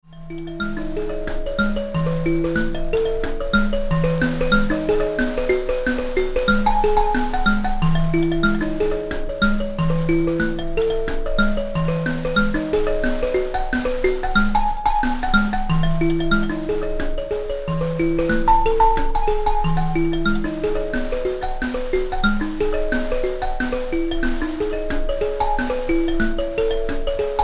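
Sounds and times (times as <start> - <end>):
mbira: 0.0 - 27.4.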